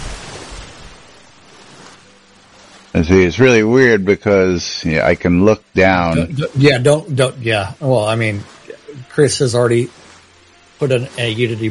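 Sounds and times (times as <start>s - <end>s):
watery hiss: 0.0s - 11.6s
speech: 2.9s - 8.5s, 9.2s - 10.0s, 10.8s - 11.6s.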